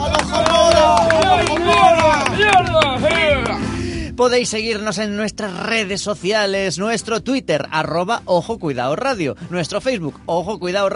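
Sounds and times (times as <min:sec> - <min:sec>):
crowd applauding: 0:00.0 - 0:03.6
loud voices cheering and calling out: 0:00.0 - 0:03.7
speech: 0:04.2 - 0:10.9.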